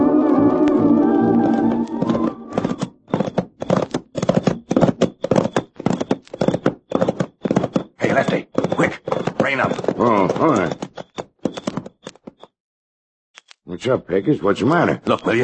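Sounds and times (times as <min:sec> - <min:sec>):
horse hooves clip-clopping: 0:00.2 - 0:12.2
speech: 0:13.8 - 0:15.4.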